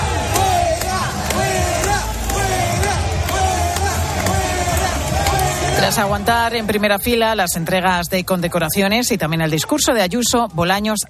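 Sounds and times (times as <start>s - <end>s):
crowd booing a politician's arrival: 0.0s - 7.0s
speech: 6.0s - 11.0s.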